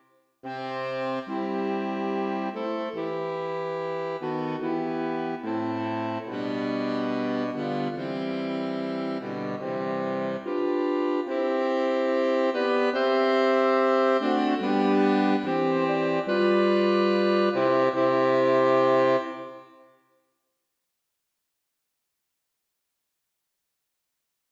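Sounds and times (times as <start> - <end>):
saxophone quartet sarabande: 0.5 - 19.8.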